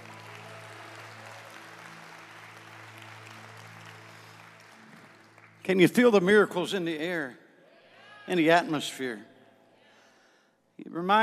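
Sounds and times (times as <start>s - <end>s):
audience clapping: 0.0s - 7.2s
speech: 5.6s - 7.4s, 8.3s - 9.3s, 10.9s - 11.2s.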